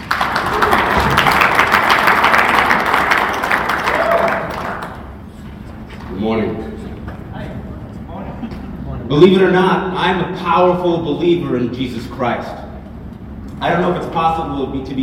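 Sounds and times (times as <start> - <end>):
audience applause: 0.0 - 5.1
speech: 9.1 - 12.6, 13.6 - 15.0.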